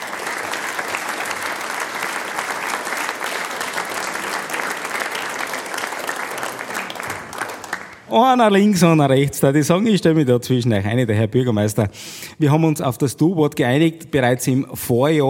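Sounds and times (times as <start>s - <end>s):
audience applause: 0.0s - 8.1s
speech: 8.1s - 15.2s.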